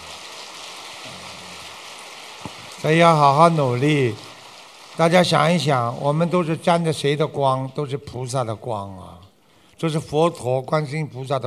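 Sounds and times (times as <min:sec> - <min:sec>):
audience applause: 0:00.0 - 0:06.6
speech: 0:02.8 - 0:04.2, 0:05.0 - 0:09.2, 0:09.8 - 0:11.4.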